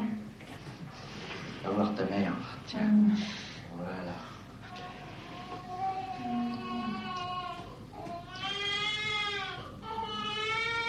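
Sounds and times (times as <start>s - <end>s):
speech: 1.6s - 4.3s
newborn baby crying at birth: 4.6s - 10.8s.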